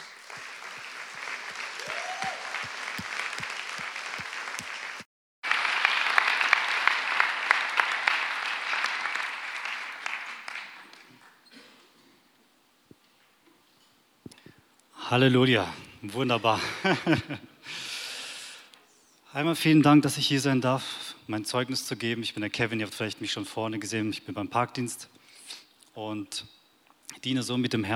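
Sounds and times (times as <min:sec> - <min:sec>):
laughter: 0:00.0 - 0:05.0, 0:15.6 - 0:18.0
audience applause: 0:00.0 - 0:11.5
speech: 0:15.1 - 0:17.8, 0:19.4 - 0:26.6, 0:27.2 - 0:27.9.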